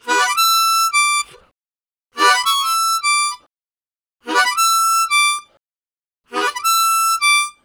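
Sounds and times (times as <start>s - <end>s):
high harmonica riffs: 0.0s - 1.4s, 2.2s - 3.4s, 4.3s - 5.5s, 6.3s - 7.6s.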